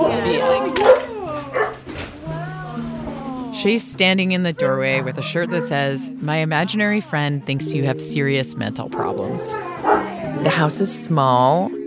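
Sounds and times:
dogs barking and whining at the door of a small two-story house: 0.0s - 6.2s, 8.9s - 10.7s
speech: 3.6s - 11.8s.

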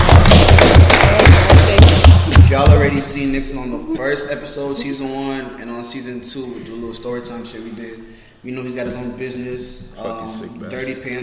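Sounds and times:
hands clapping: 0.0s - 2.8s
speech: 2.8s - 11.2s.

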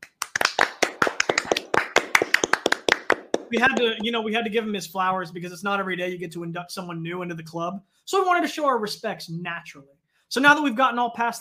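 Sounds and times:
small group clapping: 0.0s - 4.1s
speech: 3.5s - 11.4s.

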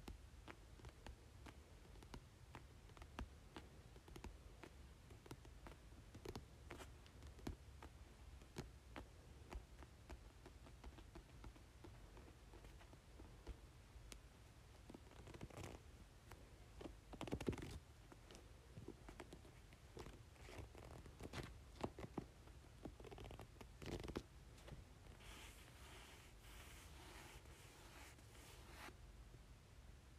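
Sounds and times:
low constant rumble: 0.0s - 30.1s
book pages handled and turned: 25.1s - 28.9s.

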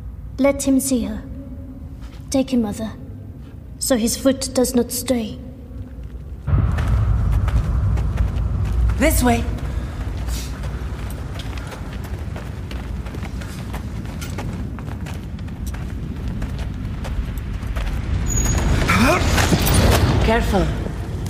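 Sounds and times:
speech: 0.4s - 1.3s, 2.3s - 3.0s, 3.8s - 5.4s, 9.0s - 9.6s, 20.3s - 20.8s
fire roaring deep in a chasm: 6.2s - 21.2s.

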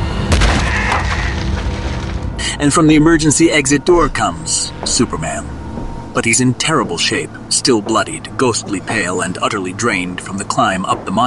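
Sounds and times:
chunk of granite slamming into a body: 0.3s - 2.4s
speech: 2.6s - 5.6s, 6.2s - 11.2s.

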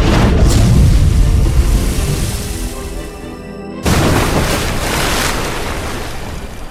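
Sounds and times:
mini-sub breaching the ocean surface with deep rushing roar: 0.0s - 4.8s
hissing splashing water and waves: 0.0s - 6.6s.

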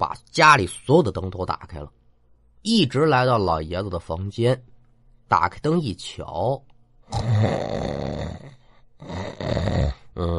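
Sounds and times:
speech: 0.0s - 2.0s, 2.6s - 4.7s, 5.3s - 10.3s
man's voice imitating an old man snoring: 7.1s - 10.3s.

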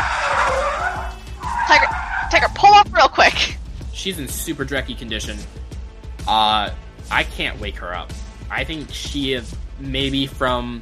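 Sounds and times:
van tires skidding as it swerves: 0.0s - 3.1s
speech: 4.0s - 5.7s, 6.3s - 10.8s.

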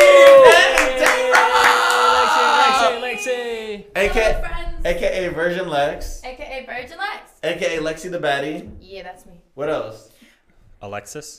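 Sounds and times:
audience applause: 0.0s - 3.2s
speech: 4.1s - 10.1s, 10.8s - 11.3s.

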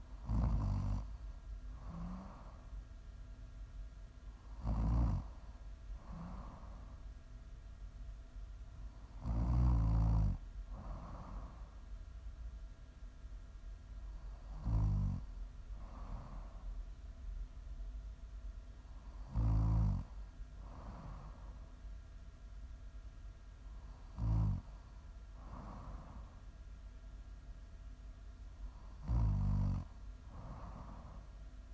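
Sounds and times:
low constant hum: 0.0s - 31.7s
person snoring: 0.2s - 1.1s, 1.8s - 2.6s, 4.6s - 5.3s, 6.0s - 6.9s, 9.2s - 11.7s, 14.5s - 15.2s, 19.2s - 21.5s, 24.1s - 24.7s, 28.9s - 31.2s.

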